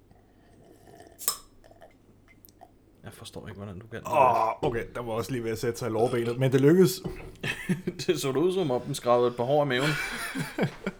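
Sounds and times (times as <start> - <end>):
person drinking beer from a glass: 0.0 - 2.8
quiet hum: 0.0 - 10.9
speech: 3.1 - 10.8
laughter: 7.0 - 10.9.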